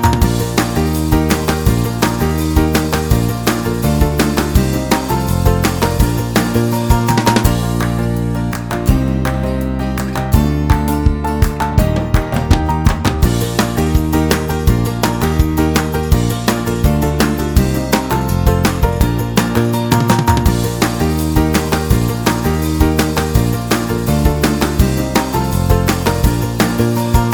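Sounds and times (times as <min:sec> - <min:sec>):
rhythmic beat: 0:00.0 - 0:09.4, 0:10.3 - 0:27.3.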